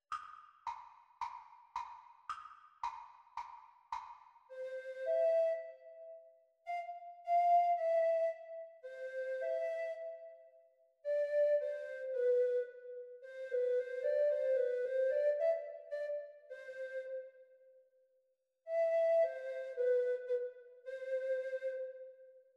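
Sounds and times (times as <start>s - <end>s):
treble recorder performance: 4.5s - 17.4s, 18.7s - 22.4s.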